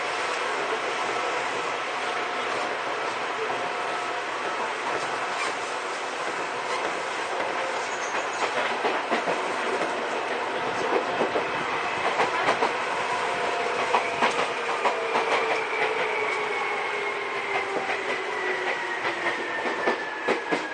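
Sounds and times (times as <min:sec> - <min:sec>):
Seibu old 2000 series train rumbling and rattling on the Seibu-Shinjuku line: 0:00.0 - 0:20.7.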